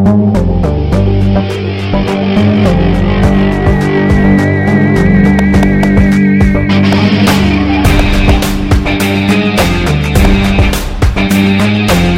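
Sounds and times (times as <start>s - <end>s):
dance music: 0.1s - 12.1s.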